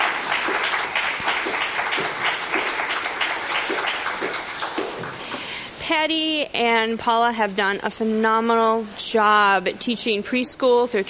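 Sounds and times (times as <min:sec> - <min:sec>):
small round of applause: 0:00.0 - 0:05.5
speech: 0:06.0 - 0:11.0.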